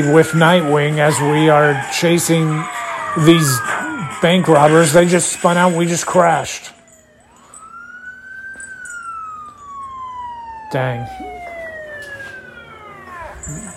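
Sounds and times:
speech: 0.0 - 6.8, 10.7 - 11.4
police car siren: 0.0 - 13.7.

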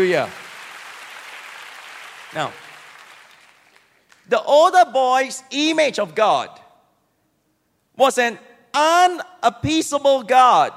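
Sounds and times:
speech: 0.0 - 0.4, 2.3 - 2.6, 4.3 - 6.6, 8.0 - 10.7
audience clapping: 0.0 - 4.3.

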